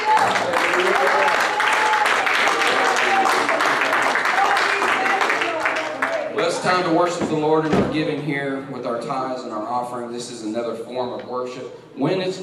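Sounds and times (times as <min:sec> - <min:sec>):
church congregation applauding during a Sunday morning service: 0:00.0 - 0:06.5
speech: 0:06.7 - 0:12.4.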